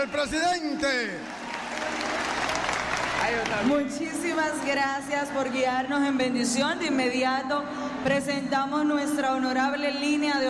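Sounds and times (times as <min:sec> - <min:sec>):
speech: 0:00.0 - 0:02.3, 0:03.2 - 0:10.4
audience applauding the president of the Dominican Republic at a formal ceremony: 0:00.0 - 0:05.1.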